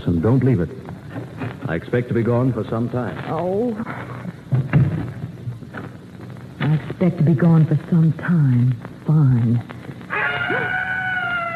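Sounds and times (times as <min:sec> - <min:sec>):
speech: 0:00.0 - 0:00.9, 0:01.7 - 0:03.9, 0:06.7 - 0:09.7
screech owl call: 0:10.1 - 0:11.5.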